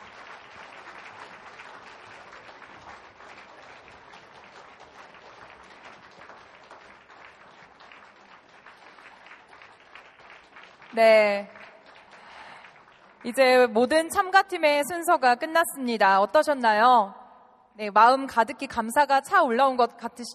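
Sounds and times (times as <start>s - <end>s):
large crowd applauding: 0.0s - 14.0s
speech: 10.9s - 11.6s, 13.2s - 17.2s, 17.8s - 20.3s.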